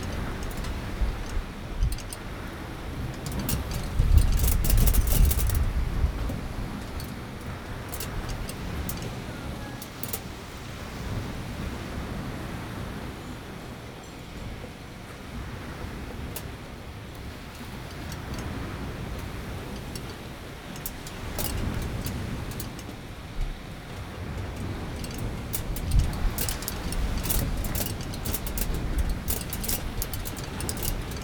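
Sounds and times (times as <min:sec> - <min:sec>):
wind on aluminium in Curacao: 0:00.0 - 0:12.9, 0:14.6 - 0:31.2.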